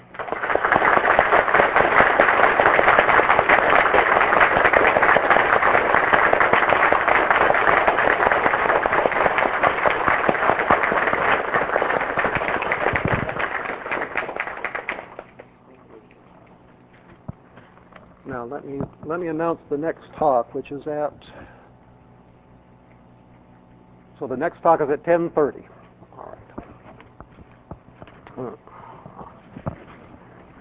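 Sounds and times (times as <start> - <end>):
audience round of applause: 0.0 - 15.4
speech: 19.1 - 21.4, 24.2 - 25.8.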